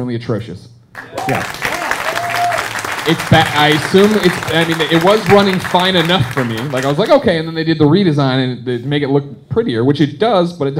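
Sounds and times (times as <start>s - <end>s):
speech: 0.0s - 1.7s, 3.1s - 10.7s
audience applause: 1.0s - 7.2s.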